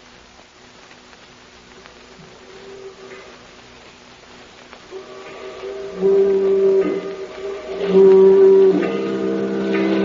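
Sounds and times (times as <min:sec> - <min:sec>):
continuous humming tone: 0:00.0 - 0:10.0
foghorn blasts: 0:04.9 - 0:10.0.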